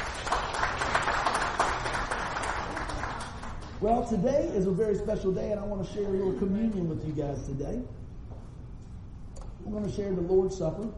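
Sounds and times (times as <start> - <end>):
audience hand clapping: 0.0 - 3.9
speech: 3.8 - 8.0, 9.7 - 10.9.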